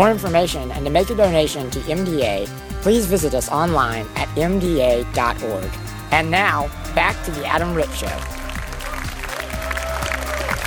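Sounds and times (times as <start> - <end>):
speech: 0.0 - 8.4
audience applause: 8.2 - 10.6.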